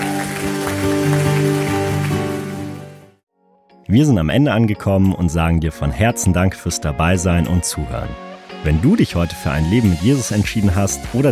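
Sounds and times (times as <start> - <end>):
audience applause: 0.0 - 3.0
speech: 3.9 - 11.3.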